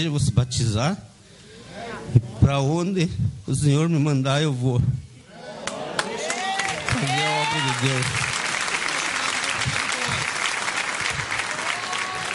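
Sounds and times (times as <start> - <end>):
speech: 0.0 - 1.1, 2.1 - 5.0, 7.0 - 8.3
audience applause: 5.6 - 12.3.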